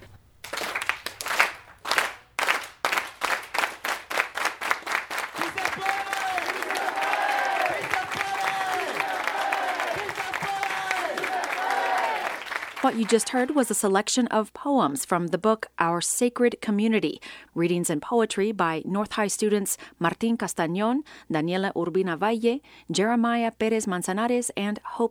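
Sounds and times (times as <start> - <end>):
crowd clapping in unison: 0.4 - 13.6
speech: 12.8 - 25.0.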